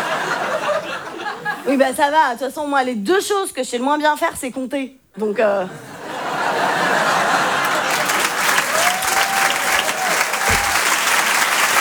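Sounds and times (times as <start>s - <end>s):
laughter: 0.0s - 1.8s, 5.7s - 11.7s
speech: 1.6s - 5.9s
audience applause at a comedy club at the Apollo Théâtre in Paris: 7.0s - 11.7s.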